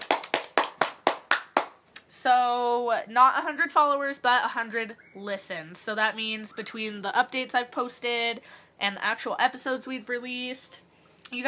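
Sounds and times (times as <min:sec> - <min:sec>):
clapping sound effect: 0:00.0 - 0:01.8
speech: 0:02.2 - 0:11.4.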